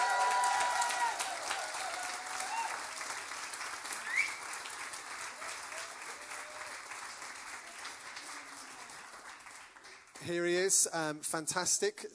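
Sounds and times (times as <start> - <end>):
audience cheering: 0.0 - 3.2, 5.3 - 9.0
speech: 10.2 - 12.1.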